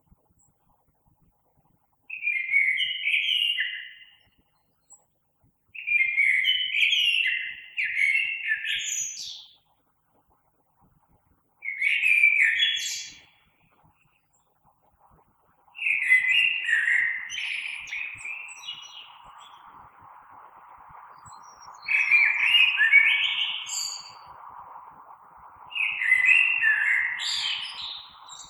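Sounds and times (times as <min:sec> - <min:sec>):
common blackbird song: 0:02.1 - 0:09.7, 0:11.6 - 0:14.6, 0:15.7 - 0:24.4, 0:25.7 - 0:28.4.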